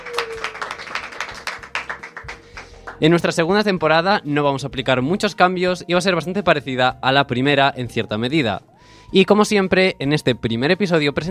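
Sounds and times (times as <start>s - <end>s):
uneven hand clapping at the start of a debating association's radio programme: 0.0s - 3.0s
speech: 3.0s - 11.2s.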